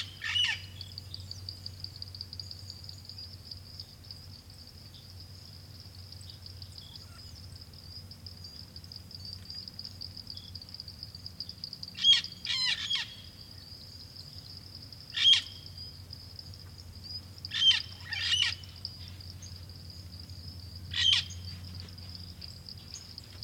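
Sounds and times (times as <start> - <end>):
Puerto Rican parrot calling: 0.0 - 0.6, 12.0 - 13.2, 15.1 - 15.5, 17.5 - 18.6, 20.9 - 21.4.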